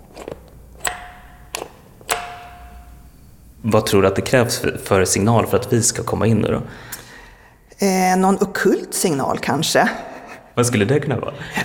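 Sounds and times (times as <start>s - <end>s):
metallic doorbell ringing: 0.8s - 3.6s
speech: 3.6s - 7.0s, 7.8s - 11.6s.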